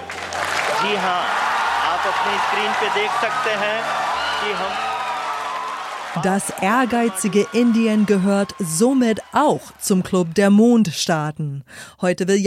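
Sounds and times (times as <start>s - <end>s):
crowd cheering and applauding at space agency: 0.0s - 10.9s
shouts and excited voices calling out: 0.6s - 10.4s
speech: 0.8s - 1.4s, 2.0s - 4.9s, 6.1s - 12.4s.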